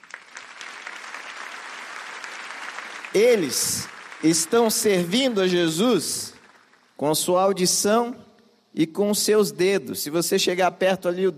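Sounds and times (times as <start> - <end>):
audience applause: 0.0 - 6.9
speech: 3.1 - 6.4, 7.0 - 11.3.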